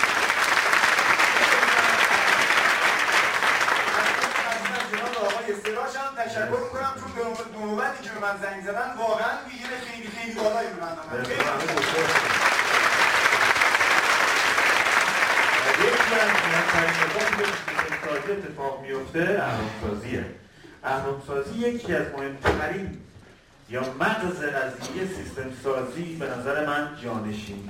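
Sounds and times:
audience applause at a talk about team building: 0.0s - 5.8s, 11.2s - 18.4s
speech: 6.4s - 12.5s, 15.7s - 23.1s, 23.7s - 27.6s.

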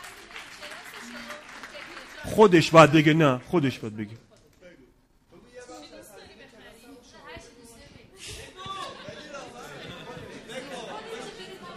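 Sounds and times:
audience applause: 0.0s - 4.2s
speech: 2.2s - 4.3s.

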